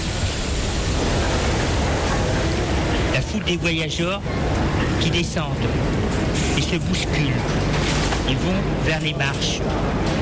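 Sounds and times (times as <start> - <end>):
metro train arriving at the platform: 0.0 - 8.8
speech: 3.5 - 10.2.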